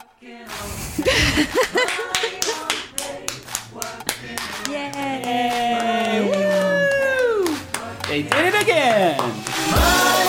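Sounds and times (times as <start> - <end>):
speech: 0.2 - 2.2
laughter: 1.0 - 2.9
applause: 1.8 - 9.8.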